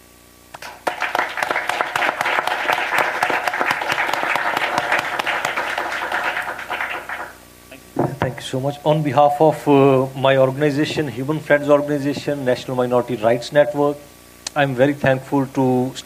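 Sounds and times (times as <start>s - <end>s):
audience applause: 0.6s - 7.4s
speech: 8.5s - 16.0s.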